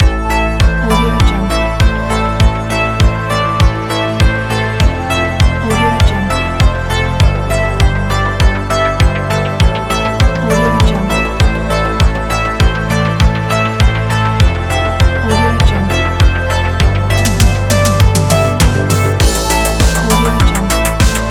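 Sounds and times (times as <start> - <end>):
synthwave music: 0.0 - 21.2.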